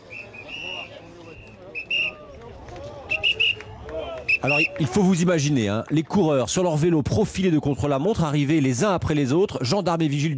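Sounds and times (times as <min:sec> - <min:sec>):
whistle blasts clearing crowd for cyclists: 0:00.0 - 0:02.2, 0:03.1 - 0:03.7, 0:04.3 - 0:04.8
crowd murmur: 0:00.0 - 0:06.9
speech: 0:04.4 - 0:10.3.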